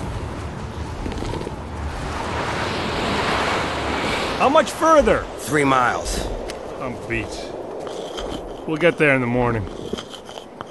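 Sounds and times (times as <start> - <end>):
strong wind roaring in open air: 0.0 - 10.6
speech: 4.4 - 7.6, 8.7 - 9.8.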